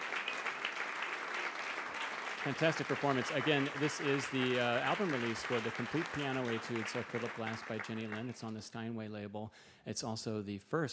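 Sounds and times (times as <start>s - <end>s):
audience applause after live piano performance: 0.0s - 8.6s
speech: 2.4s - 10.9s.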